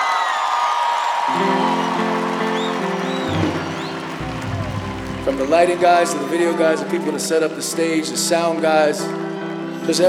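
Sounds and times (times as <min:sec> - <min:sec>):
audience applause and cheering: 0:00.0 - 0:10.0
speech: 0:05.3 - 0:10.0.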